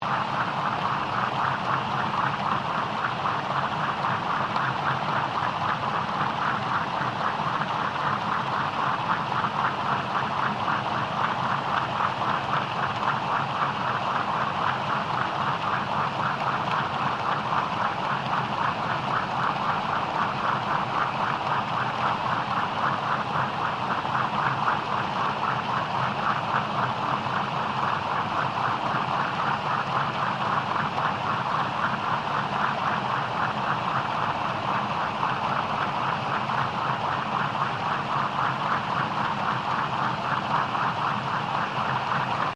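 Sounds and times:
large restaurant boat engine recorded submerged: 0.1s - 42.5s.

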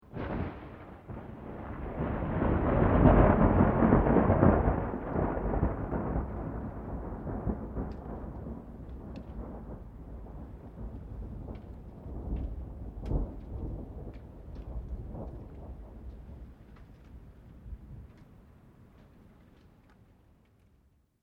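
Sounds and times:
long mid-distance thunder: 0.0s - 16.6s.

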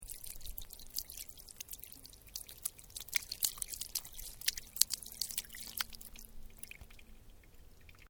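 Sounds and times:
playground drinking fountain water: 0.0s - 8.0s.

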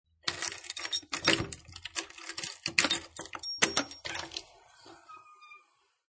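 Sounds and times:
keys rattling: 0.2s - 4.4s
door unlocking: 0.3s - 4.5s
door opening: 0.3s - 6.0s.

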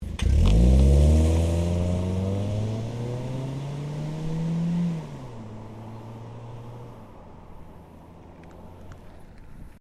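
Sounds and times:
Ford Focus car driving off: 0.0s - 9.7s.

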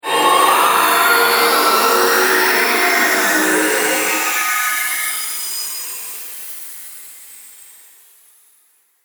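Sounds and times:
monster sound: 0.0s - 5.0s.

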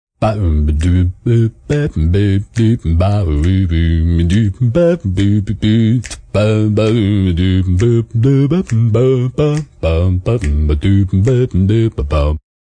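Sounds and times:
bass: 0.2s - 12.4s
male slow jazz scat singing: 0.2s - 12.4s.

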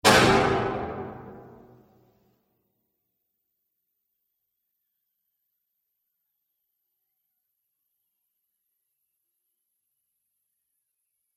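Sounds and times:
bomb explosion bang sound effect: 0.0s - 1.8s.

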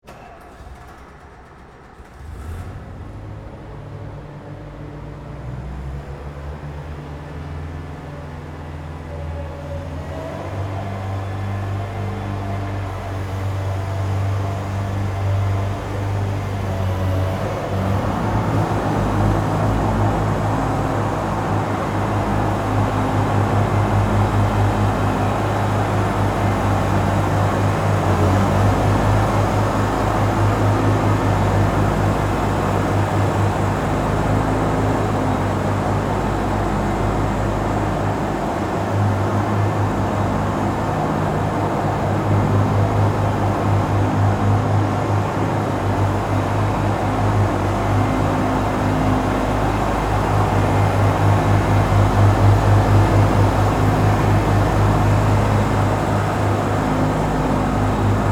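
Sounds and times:
Zamboni ice resurfacing machine running on ice: 0.0s - 58.2s.

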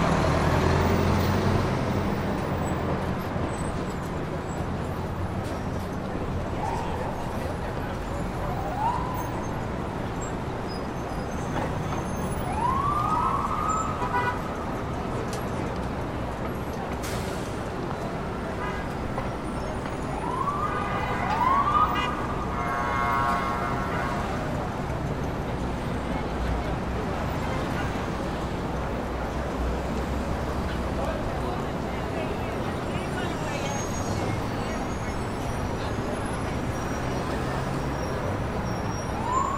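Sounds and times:
city traffic in Times Square New York: 0.0s - 39.5s
sirens in Times Square New York: 6.2s - 10.0s, 11.8s - 15.1s, 19.3s - 24.6s, 33.0s - 39.5s.

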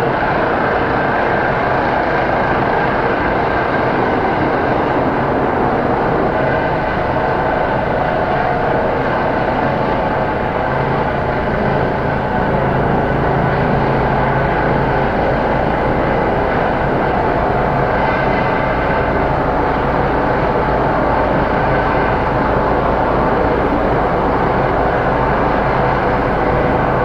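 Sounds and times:
large helicopter hovering overhead: 0.0s - 27.0s.

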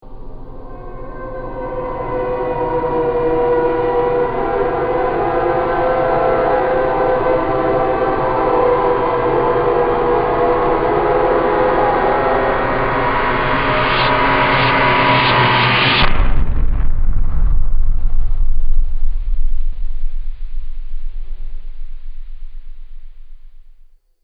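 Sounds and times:
howling: 0.4s - 15.8s
movie impact: 12.4s - 23.8s.

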